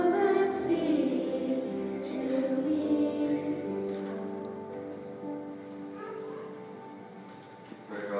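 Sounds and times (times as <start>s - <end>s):
person singing: 0.0s - 4.4s.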